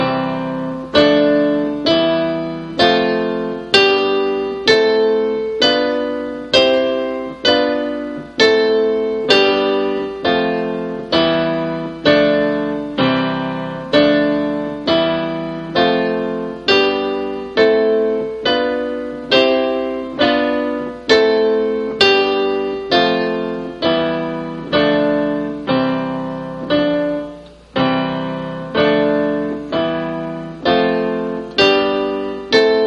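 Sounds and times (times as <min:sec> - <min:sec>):
keyboard chords played with both hands, C-E-G chord under a right-hand note: 0:00.0 - 0:32.8.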